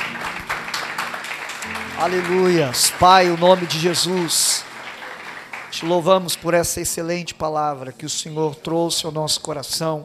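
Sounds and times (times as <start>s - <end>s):
audience applauding: 0.0s - 7.2s
speech: 2.0s - 4.7s, 5.8s - 10.0s.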